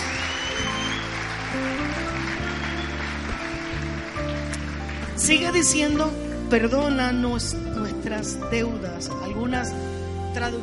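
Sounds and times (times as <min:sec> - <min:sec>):
audience applauding: 0:00.0 - 0:05.7
speech: 0:05.3 - 0:10.6.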